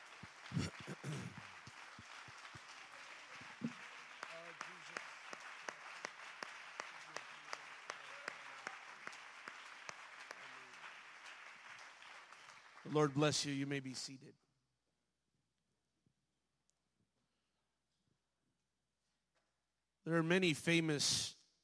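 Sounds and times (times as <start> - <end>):
people clapping hands in praise: 0.0 - 14.0
speech: 12.9 - 14.4, 20.1 - 21.4.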